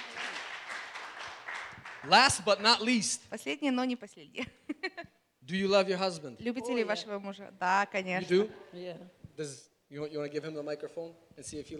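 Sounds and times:
crowd applauding: 0.0 - 3.0
speech: 2.0 - 11.7.

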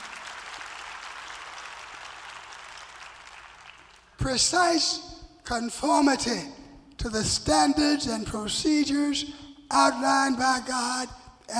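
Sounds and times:
audience clapping hands: 0.0 - 4.2
speech: 4.2 - 11.5.

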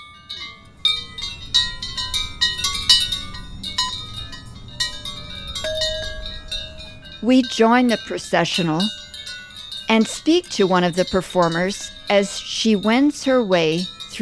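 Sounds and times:
handheld chimes ringing during a procession: 0.0 - 14.2
steady low rumble: 0.8 - 7.3
speech: 7.2 - 9.0, 9.9 - 14.2.

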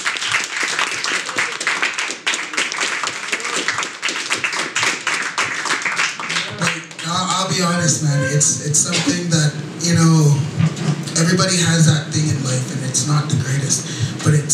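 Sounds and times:
audience clapping at a live show at Koi: 0.0 - 9.2
crowd voices cheering: 1.1 - 3.9, 6.1 - 10.5
speech: 7.4 - 10.5, 11.2 - 14.5.

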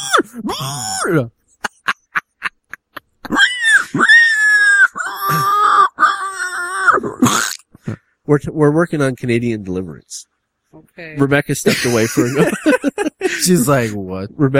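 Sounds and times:
voice imitating a pig squealing: 0.0 - 1.3, 3.2 - 7.9
speech: 0.4 - 1.4, 8.3 - 14.5
laughter: 1.6 - 3.5, 11.6 - 14.1.

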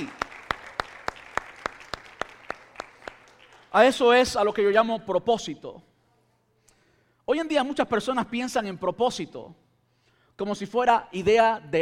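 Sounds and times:
audience applause: 0.0 - 3.8
speech: 3.7 - 5.9, 7.3 - 9.6, 10.4 - 11.8.

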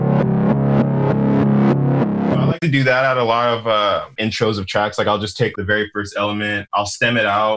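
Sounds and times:
reversed pluck sample in a music production: 0.0 - 2.8
speech: 2.6 - 7.5.

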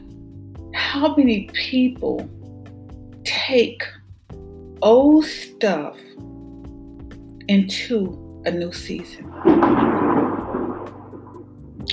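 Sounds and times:
speech: 0.9 - 2.4, 3.5 - 4.0, 4.8 - 6.3, 7.5 - 10.0
thunder rumbling: 9.2 - 11.6.

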